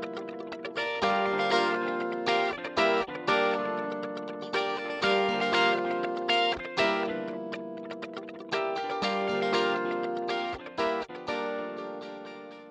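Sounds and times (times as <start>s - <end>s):
guitar through vintage digital multishift effect: 0.0s - 12.7s.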